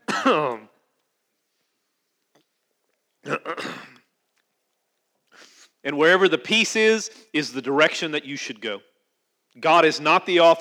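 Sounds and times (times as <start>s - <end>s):
man coughing and clearing throat after choking on his tongue: 0.0s - 0.8s, 3.2s - 4.1s
speech: 0.2s - 0.7s, 3.2s - 3.9s, 5.8s - 8.9s, 9.6s - 10.5s.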